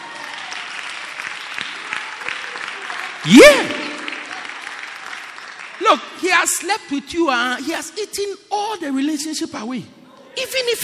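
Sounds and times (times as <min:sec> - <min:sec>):
audience clapping: 0:00.0 - 0:06.9
speech: 0:03.2 - 0:03.8, 0:05.9 - 0:10.8.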